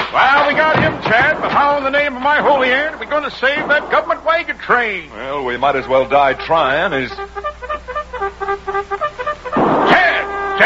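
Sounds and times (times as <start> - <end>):
speech: 0.1 - 7.4
cavalry bugle call: 5.8 - 10.6.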